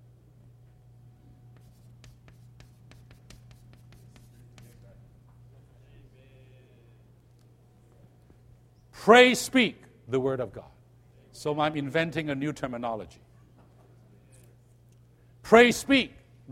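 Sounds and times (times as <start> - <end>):
steady low hum: 0.0 - 16.4
pen writing by hand: 1.6 - 4.7
speech: 9.0 - 10.8, 11.4 - 13.3, 15.5 - 16.4.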